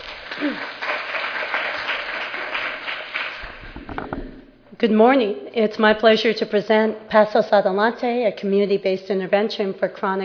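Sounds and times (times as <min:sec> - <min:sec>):
audience applauding to welcome a speaker at a public health presentation: 0:00.0 - 0:04.0
speech: 0:00.4 - 0:00.8, 0:04.8 - 0:10.2.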